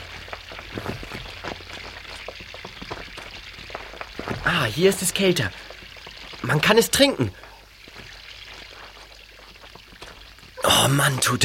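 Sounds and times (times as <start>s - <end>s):
water running down a tunnel: 0.0s - 11.4s
speech: 4.5s - 5.6s, 6.4s - 7.4s, 10.9s - 11.4s.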